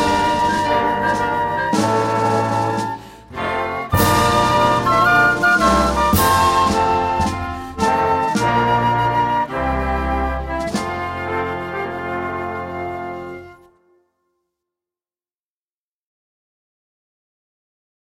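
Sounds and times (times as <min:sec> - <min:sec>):
wind and brass band short version: 0:00.0 - 0:14.0.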